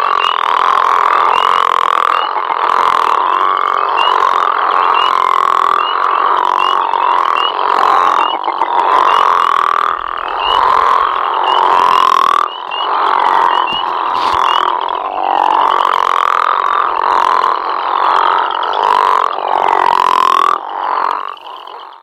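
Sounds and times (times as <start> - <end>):
Lithobates areolatus frog giving a loud deep snoring call: 0.0 - 22.0.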